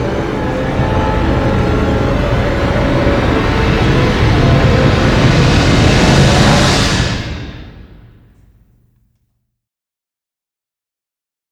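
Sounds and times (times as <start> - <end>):
orchestral rise: 0.0 - 8.7.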